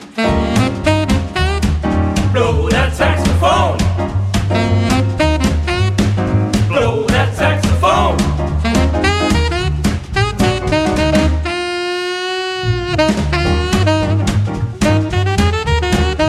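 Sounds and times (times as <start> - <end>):
saxophone: 0.2 - 16.2.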